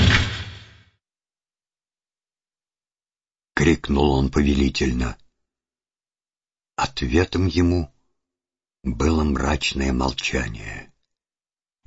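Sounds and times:
staff striking wrought-iron tower doors with a booming clang: 0.0s - 0.7s
speech: 3.6s - 5.2s, 6.8s - 7.9s, 8.8s - 10.9s.

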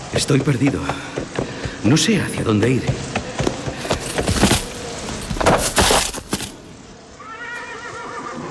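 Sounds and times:
speech: 0.2s - 1.2s, 1.8s - 3.1s
shuffling: 3.4s - 6.7s
horse snorting: 3.7s - 6.5s.

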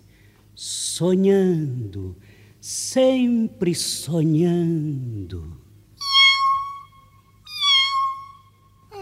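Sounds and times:
speech: 0.6s - 5.6s
cat meowing: 7.5s - 8.4s.

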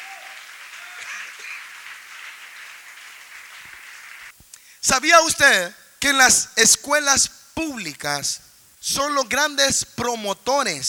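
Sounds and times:
audience clapping: 0.0s - 4.4s
speech: 4.8s - 10.8s.

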